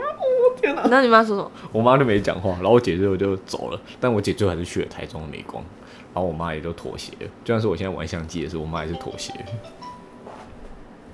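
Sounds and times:
speech: 0.8 - 9.9
mobile phone ringing: 8.8 - 10.2.

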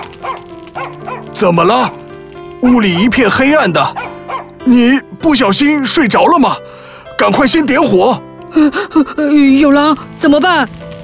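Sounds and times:
dog barking fiercely: 0.0 - 1.4, 3.9 - 4.6
speech: 0.8 - 2.0, 2.6 - 10.8.

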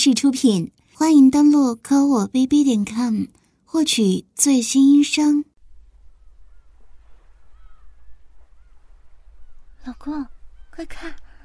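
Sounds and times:
speech: 0.0 - 5.5, 9.8 - 11.2
seagulls calling at the seaside: 6.0 - 11.4.

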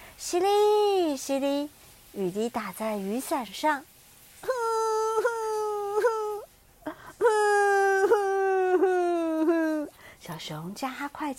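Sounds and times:
speech: 0.2 - 4.5, 10.4 - 11.3
crying sound effect: 4.6 - 9.9.

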